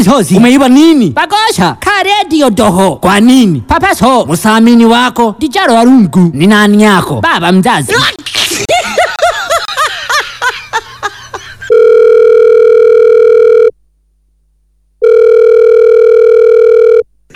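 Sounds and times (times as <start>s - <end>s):
speech: 0.0s - 8.3s
people laughing: 8.5s - 11.7s
telephone ringing tone: 11.7s - 13.8s, 15.0s - 17.1s.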